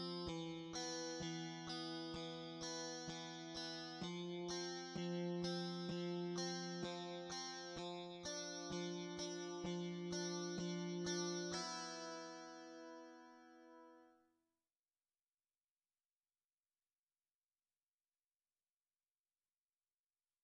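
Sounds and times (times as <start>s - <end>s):
electric guitar: 0.0s - 14.0s.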